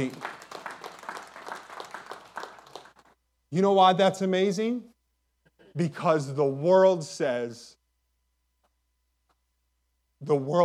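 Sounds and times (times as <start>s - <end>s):
speech: 0.0s - 0.3s, 3.5s - 4.9s, 5.8s - 7.8s, 10.2s - 10.6s
church congregation clapping: 0.0s - 3.2s.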